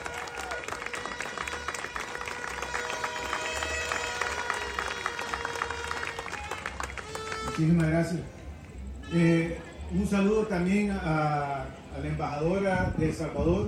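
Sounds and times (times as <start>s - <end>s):
audience applause: 0.0s - 7.9s
speech: 7.6s - 8.4s, 9.1s - 13.6s.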